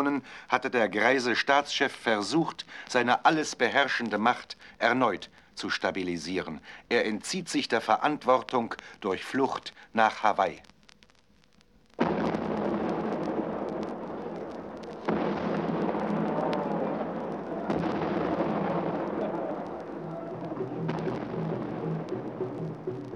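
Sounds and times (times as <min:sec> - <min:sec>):
speech: 0:00.0 - 0:10.7
artillery gun salute shots: 0:12.0 - 0:23.1.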